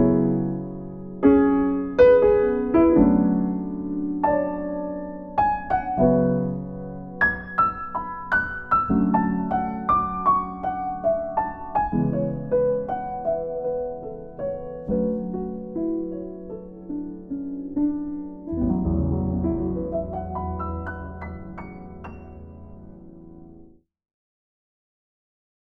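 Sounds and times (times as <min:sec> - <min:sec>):
expressive cocktail piano: 0:00.0 - 0:23.8.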